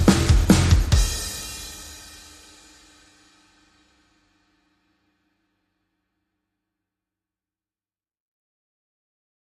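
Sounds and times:
bass: 0:00.0 - 0:01.7
drums: 0:00.0 - 0:04.2.

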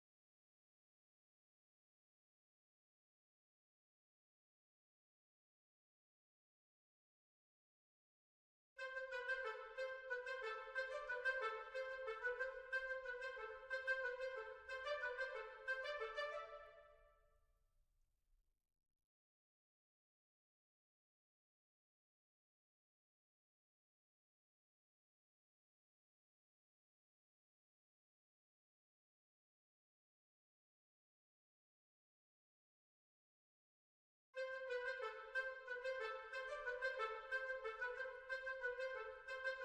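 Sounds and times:
woodwinds: 0:08.8 - 0:17.0, 0:34.4 - 0:39.6.

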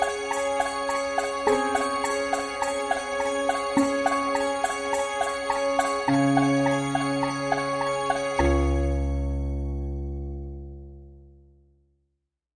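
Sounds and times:
bells jingling: 0:00.0 - 0:09.9.

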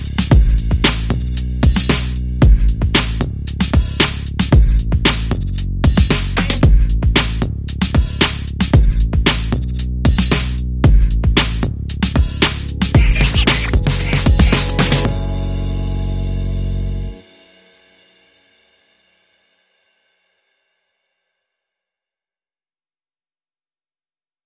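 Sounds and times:
drum and bass music: 0:00.0 - 0:17.2.

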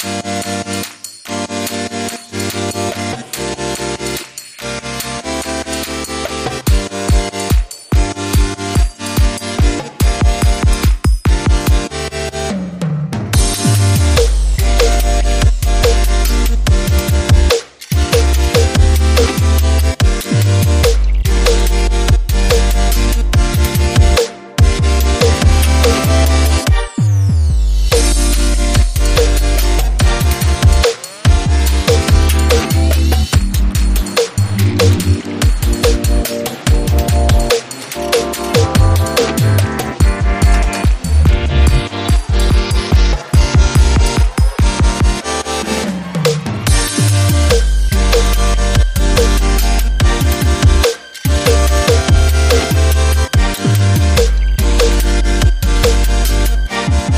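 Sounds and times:
underscore music: 0:00.0 - 0:57.1.

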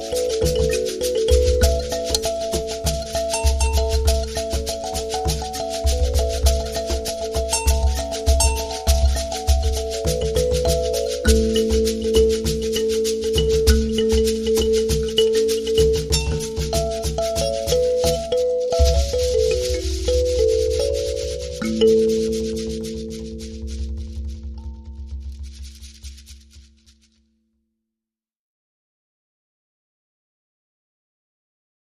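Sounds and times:
thumb piano rhythm: 0:00.0 - 0:25.2.

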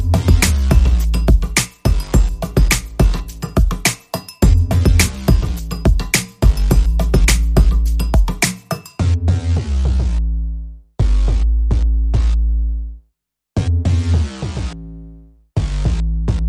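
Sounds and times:
bass: 0:00.0 - 0:03.8, 0:04.4 - 0:16.4
drums: 0:00.0 - 0:09.0.

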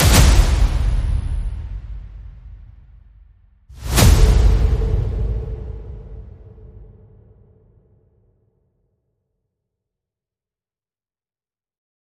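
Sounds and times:
percussion: 0:00.0 - 0:03.2, 0:03.8 - 0:07.9.

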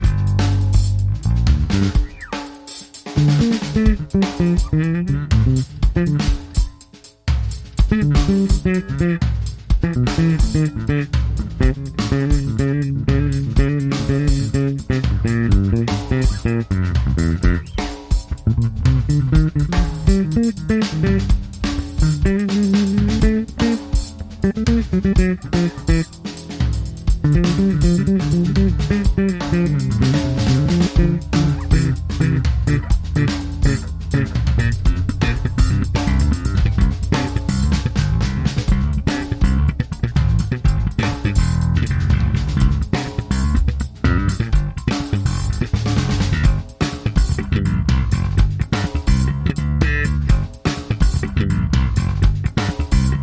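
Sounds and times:
solo bass groove: 0:00.0 - 0:53.2.

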